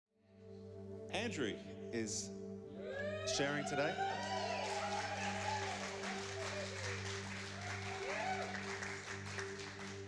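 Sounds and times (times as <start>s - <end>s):
speech: 1.1s - 4.3s
audience applause: 3.9s - 10.0s.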